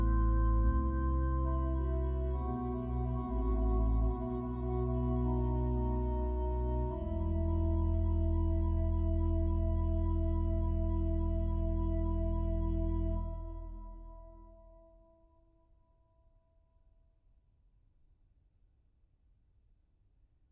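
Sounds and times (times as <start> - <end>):
organ playing a lament: 0.0 - 14.5.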